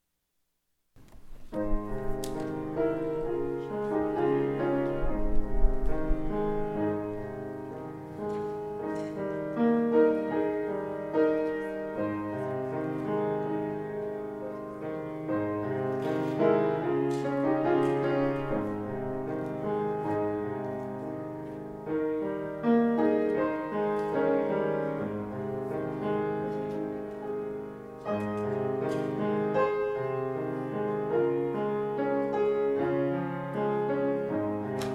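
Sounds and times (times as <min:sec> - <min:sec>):
piano piece: 0:01.0 - 0:34.9.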